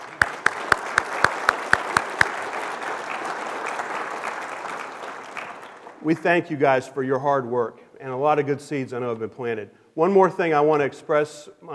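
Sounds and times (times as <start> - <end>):
sharp evenly spaced claps: 0.0 - 6.4
speech: 6.0 - 11.7.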